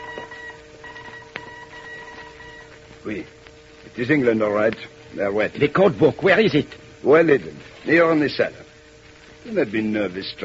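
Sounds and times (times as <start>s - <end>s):
radio identification call signals, steady electronic tones: 0.0s - 3.9s
static hiss: 0.0s - 10.4s
speech: 3.0s - 8.7s, 9.4s - 10.4s.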